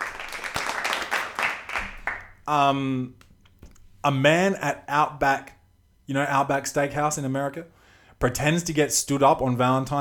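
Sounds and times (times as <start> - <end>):
applause sound effect: 0.0 - 2.4
speech: 2.5 - 3.2, 4.0 - 9.9.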